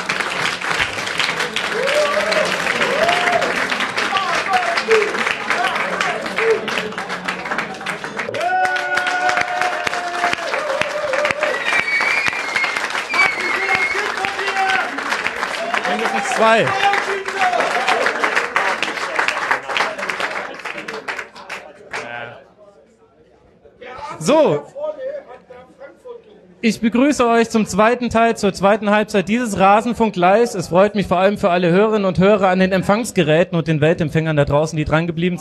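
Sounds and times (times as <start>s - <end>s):
audience applause: 0.0s - 22.2s
speech: 16.4s - 16.9s, 26.6s - 35.3s.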